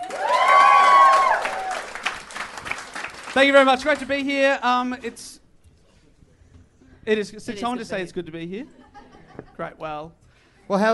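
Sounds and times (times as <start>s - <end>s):
audience clapping: 0.0s - 4.4s
loud sustained high whoop or whistle: 0.1s - 1.9s
speech: 3.4s - 5.4s, 7.1s - 8.8s, 9.6s - 10.9s.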